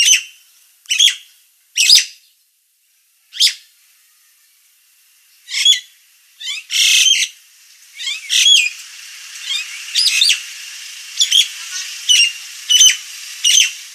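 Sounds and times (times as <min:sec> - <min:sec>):
Nias hill myna calling: 0:05.4 - 0:13.9.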